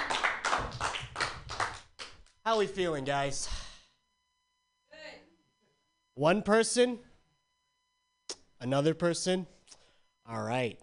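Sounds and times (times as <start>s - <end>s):
audience clapping for a comedian at an open-mic comedy night: 0.0s - 2.4s
speech: 2.5s - 3.6s, 6.2s - 7.1s, 8.6s - 9.6s, 10.3s - 10.8s.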